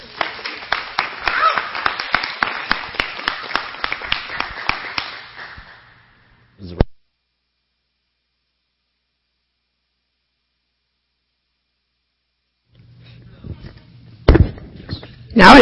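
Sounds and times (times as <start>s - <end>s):
audience clapping to welcome a speaker at a Sunday church gathering: 0.0s - 6.1s.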